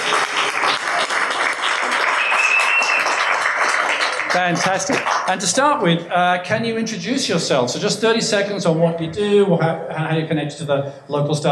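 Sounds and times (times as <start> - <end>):
live audience applause: 0.0 - 5.7
speech: 4.4 - 11.5.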